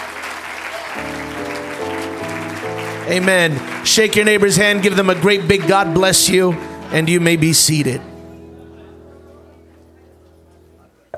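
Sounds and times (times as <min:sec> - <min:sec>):
audience clapping hands in praise: 0:00.0 - 0:07.5
speech: 0:03.1 - 0:08.1.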